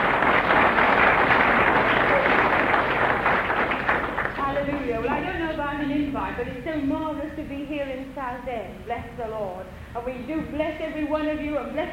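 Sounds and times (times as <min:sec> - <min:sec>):
audience applause: 0:00.0 - 0:05.2
faint murmur of voices: 0:00.0 - 0:11.9
speech: 0:06.4 - 0:11.9.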